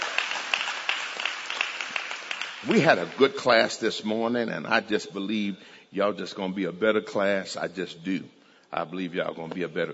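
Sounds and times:
crowd applause and noise: 0.0 - 3.4
audience clapping in rhythm: 0.0 - 3.8
speech: 2.6 - 9.9.

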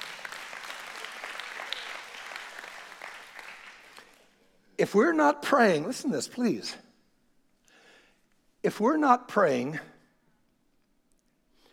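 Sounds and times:
audience hand clapping: 0.0 - 4.3
speech: 4.8 - 6.8, 8.6 - 9.9.

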